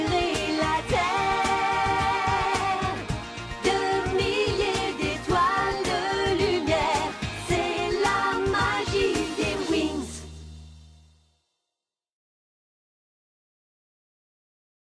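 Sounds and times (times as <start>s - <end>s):
French theme music: 0.0s - 11.2s.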